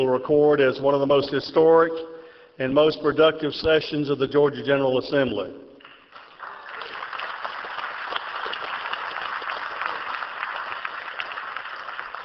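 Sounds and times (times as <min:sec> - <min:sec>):
speech: 0:00.0 - 0:05.7
crowd applause in the chamber: 0:06.0 - 0:12.2.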